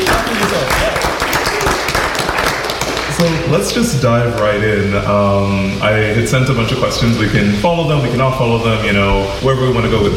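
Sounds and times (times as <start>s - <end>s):
audience clapping: 0.0s - 4.6s
speech: 3.5s - 10.1s.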